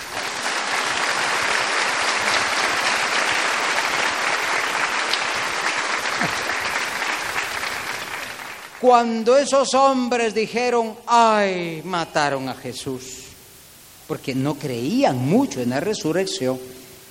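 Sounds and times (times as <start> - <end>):
audience applause: 0.0 - 8.8
speech: 8.8 - 13.2, 14.1 - 16.8.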